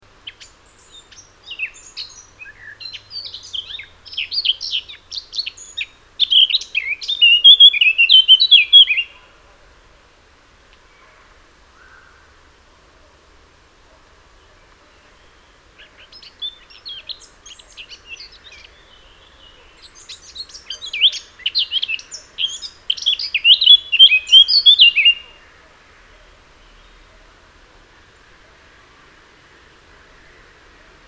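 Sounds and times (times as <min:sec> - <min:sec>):
Eurasian blackcap singing: 0:00.2 - 0:09.2, 0:15.2 - 0:25.4.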